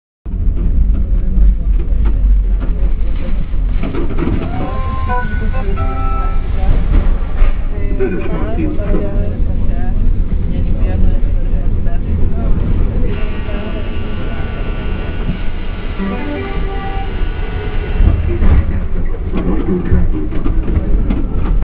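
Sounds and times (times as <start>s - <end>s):
train: 0.3s - 21.6s.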